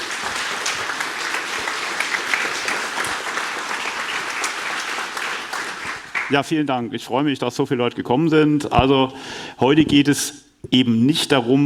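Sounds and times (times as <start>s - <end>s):
audience applause: 0.0s - 6.4s
speech: 6.3s - 11.6s.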